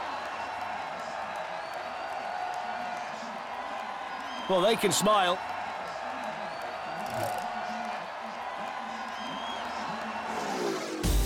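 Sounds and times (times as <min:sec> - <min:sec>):
large capacity crowd roaring and cheering with whoops: 0:00.0 - 0:11.1
speech: 0:04.5 - 0:05.6.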